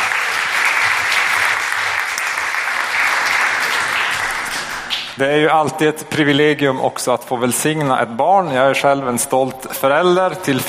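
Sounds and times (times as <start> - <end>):
audience applause: 0.0 - 5.2
speech: 5.2 - 10.6.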